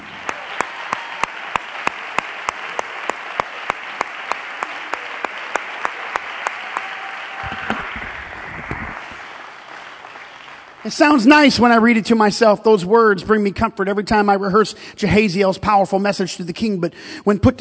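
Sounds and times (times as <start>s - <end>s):
audience clapping: 0.0s - 11.6s
speech: 10.9s - 17.5s.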